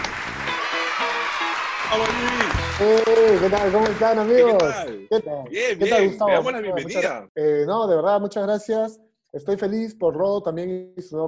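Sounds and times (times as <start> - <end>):
audience applause: 0.0 - 4.9
speech: 1.9 - 11.2.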